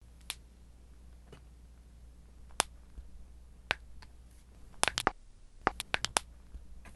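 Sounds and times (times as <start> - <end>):
human knuckles cracking: 4.8 - 6.3.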